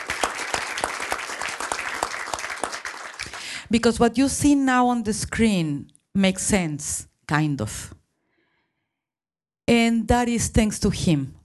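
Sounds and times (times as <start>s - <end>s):
audience applause: 0.0s - 3.5s
speech: 3.7s - 8.0s, 9.7s - 11.4s.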